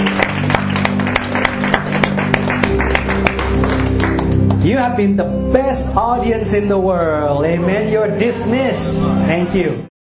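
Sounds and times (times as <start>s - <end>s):
audience clapping: 0.0s - 4.8s
speech: 4.8s - 9.9s.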